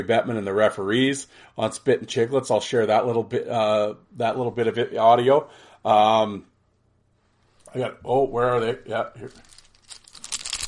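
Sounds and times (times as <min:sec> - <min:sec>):
speech: 0:00.0 - 0:06.5, 0:07.7 - 0:09.6
plastic hockey card pack wrappers crinkling: 0:09.2 - 0:10.6.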